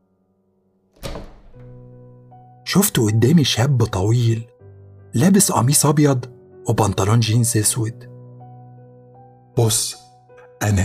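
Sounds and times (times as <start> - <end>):
dull heavy knock on a door: 1.0 - 2.0
speech: 2.7 - 4.5, 5.2 - 8.1, 9.6 - 10.0, 10.6 - 10.8.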